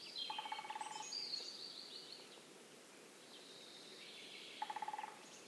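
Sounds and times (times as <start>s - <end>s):
lesser spotted woodpecker: 0.3s - 1.0s, 4.6s - 5.2s.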